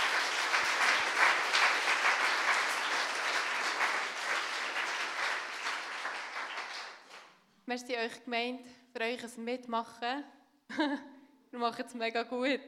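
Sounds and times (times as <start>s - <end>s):
audience applause for the musicians: 0.0s - 7.3s
speech: 7.7s - 12.6s.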